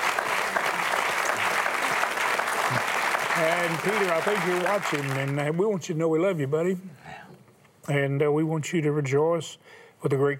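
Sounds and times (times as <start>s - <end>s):
audience applauding: 0.0s - 5.6s
speech: 2.7s - 7.0s, 7.9s - 10.3s.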